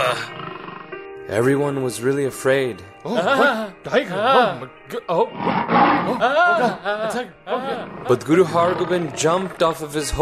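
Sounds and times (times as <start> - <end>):
tiger roaring: 0.0 - 1.0, 5.2 - 6.4, 7.6 - 10.1
speech: 1.3 - 10.1
laughter: 3.1 - 4.7, 6.0 - 8.0.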